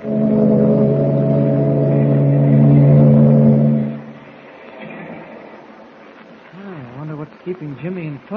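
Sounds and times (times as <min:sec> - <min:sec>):
ship engine drone as it leaves harbor: 0:00.0 - 0:06.4
speech: 0:07.6 - 0:08.3.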